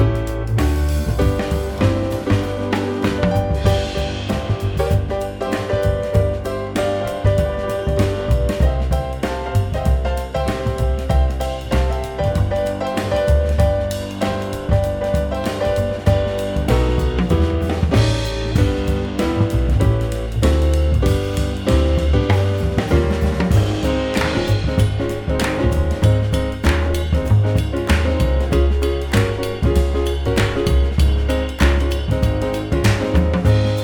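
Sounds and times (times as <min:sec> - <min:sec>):
praise music backing track: 0:00.0 - 0:33.8.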